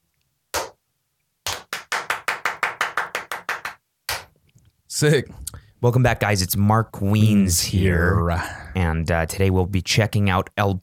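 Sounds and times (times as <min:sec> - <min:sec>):
hand claps for syncing a camera: 0:00.6 - 0:00.8, 0:01.4 - 0:04.3
speech: 0:05.0 - 0:10.8.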